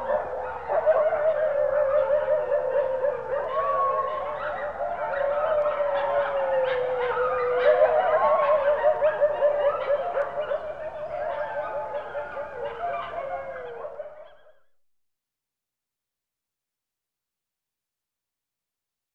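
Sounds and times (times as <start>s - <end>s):
wolves howling and yipping in a chorus: 0.0s - 14.4s.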